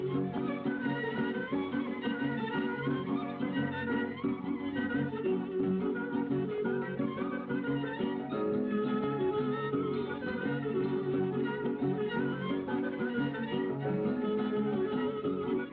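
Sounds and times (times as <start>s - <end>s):
folk dance music: 0.0s - 15.7s.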